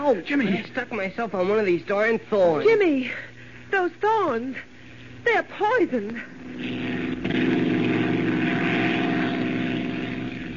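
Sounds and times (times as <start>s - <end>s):
speech: 0.0s - 6.9s
propeller airplane engine drone in flight: 6.3s - 10.5s.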